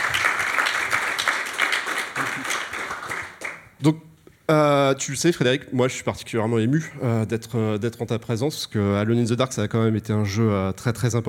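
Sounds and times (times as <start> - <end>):
audience applause: 0.0 - 3.7
speech: 3.8 - 11.2.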